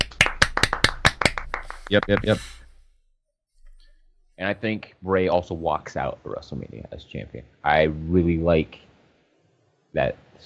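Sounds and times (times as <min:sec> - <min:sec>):
hands clapping: 0:00.0 - 0:02.6
speech: 0:01.9 - 0:02.6, 0:04.4 - 0:08.9, 0:09.9 - 0:10.4.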